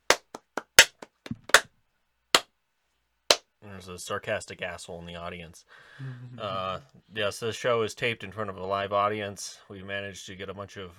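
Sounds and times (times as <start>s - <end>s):
single person clapping: 0.0s - 1.7s
speech: 3.7s - 10.9s.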